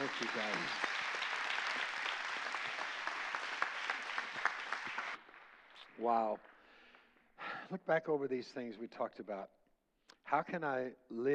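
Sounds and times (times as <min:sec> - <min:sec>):
audience applause: 0:00.0 - 0:05.8
speech: 0:06.0 - 0:06.5, 0:07.7 - 0:09.6, 0:10.3 - 0:11.3.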